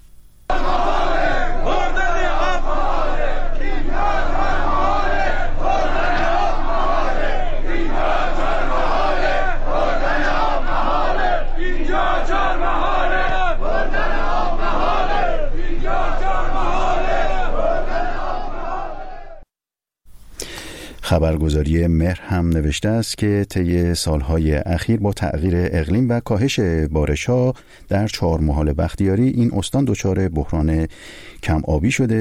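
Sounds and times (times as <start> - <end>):
large crowd of protesters chanting in unison: 0.5 - 19.4
speech: 21.4 - 32.1.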